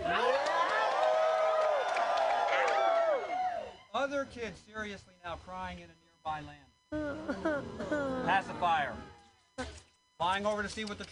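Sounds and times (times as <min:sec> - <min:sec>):
crowd cheering and shouting at a children's event: 0:00.0 - 0:03.8
speech: 0:04.1 - 0:11.0.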